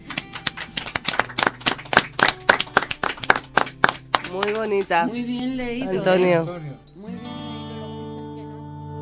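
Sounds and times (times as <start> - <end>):
audience applause: 0.0 - 5.3
speech: 4.3 - 7.4.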